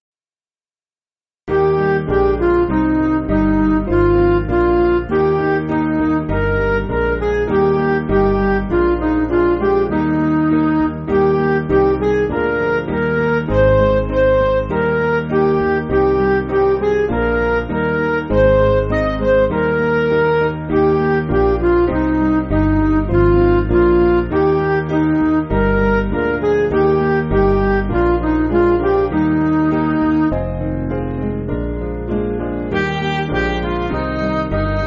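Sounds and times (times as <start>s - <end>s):
MIDI music: 1.5s - 34.8s.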